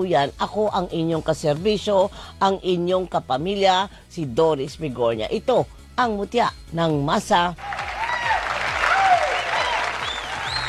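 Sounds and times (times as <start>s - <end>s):
speech: 0.0s - 7.7s
audience applause: 7.6s - 10.6s.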